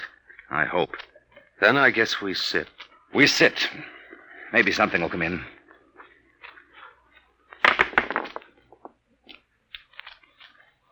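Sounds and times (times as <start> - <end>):
speech: 0.5 - 5.6
dice being rolled, rattling and clicking: 7.5 - 10.6.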